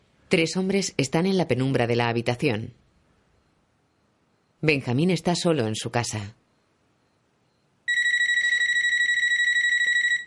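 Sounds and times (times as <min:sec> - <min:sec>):
speech: 0:00.3 - 0:02.8, 0:04.6 - 0:06.4
telephone ringing with electronic trill: 0:07.9 - 0:10.2.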